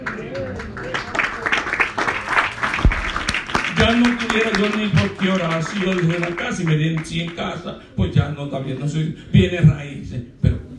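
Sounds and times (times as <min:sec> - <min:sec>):
crowd clapping: 0:00.0 - 0:07.7
speech: 0:03.9 - 0:10.4.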